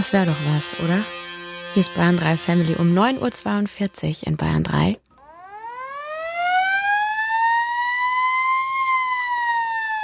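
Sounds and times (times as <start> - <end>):
speech: 0.0 - 5.0
village fire alarm siren wailing: 5.2 - 10.0.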